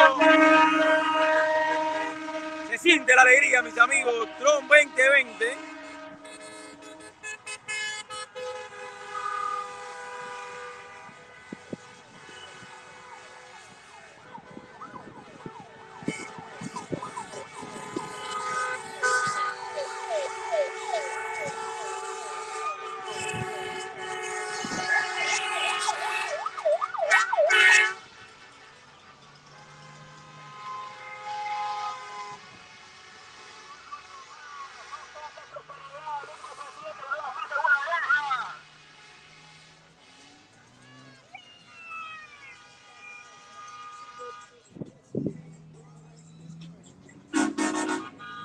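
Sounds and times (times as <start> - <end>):
siren-like wail: 0.0 - 8.2, 9.0 - 35.2, 40.7 - 44.6
car horns honking in a caravan: 0.0 - 48.4
speech: 3.0 - 5.7.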